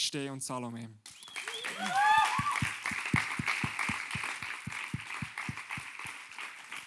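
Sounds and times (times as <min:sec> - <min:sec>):
speech: 0:00.0 - 0:02.4
audience applause: 0:01.3 - 0:06.8.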